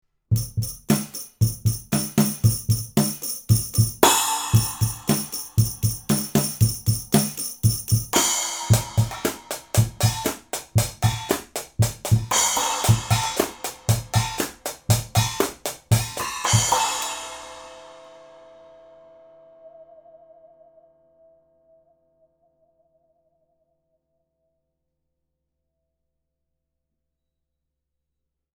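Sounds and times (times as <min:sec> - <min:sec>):
drums recorded with Blumlein C414 microphones: 0:00.3 - 0:18.4.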